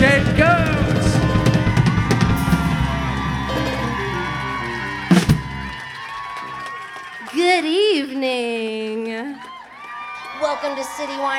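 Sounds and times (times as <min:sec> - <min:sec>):
audience applause: 0:00.0 - 0:11.3
crowd cheering and whooping: 0:00.4 - 0:07.8, 0:09.2 - 0:11.3
speech: 0:10.6 - 0:11.3.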